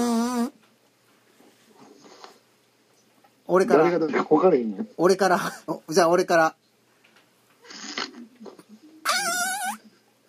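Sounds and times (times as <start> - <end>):
voice imitating a fart: 0.0 - 0.6, 7.7 - 8.3, 9.0 - 9.8
speech: 3.5 - 6.6.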